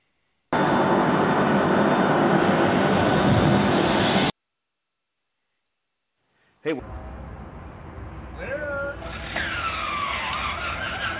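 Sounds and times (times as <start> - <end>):
propeller airplane engine starting up: 0.6 - 4.3, 8.1 - 11.1
speech: 6.7 - 7.1.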